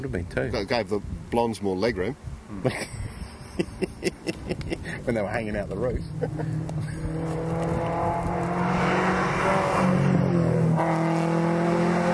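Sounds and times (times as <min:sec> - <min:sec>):
speech: 0:00.0 - 0:03.0, 0:03.6 - 0:08.9
laughter: 0:02.6 - 0:05.0, 0:06.1 - 0:07.2
Porsche 944 S2 engine revving past: 0:06.1 - 0:12.1.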